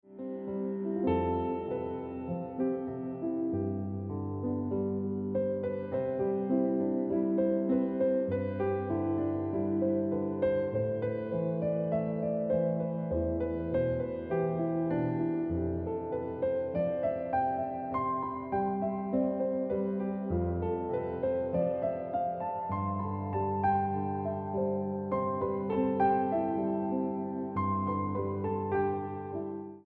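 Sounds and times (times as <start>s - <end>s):
piano music: 0.0s - 29.8s.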